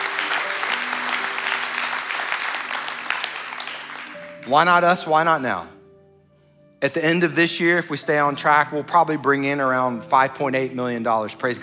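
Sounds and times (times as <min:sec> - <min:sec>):
audience applauding: 0:00.0 - 0:04.8
speech: 0:04.5 - 0:05.8, 0:06.8 - 0:11.6.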